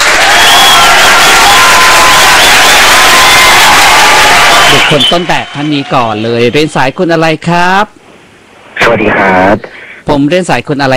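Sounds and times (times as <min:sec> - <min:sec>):
applause welcoming a guest: 0:00.0 - 0:06.3
speech: 0:04.9 - 0:08.0, 0:08.9 - 0:10.9.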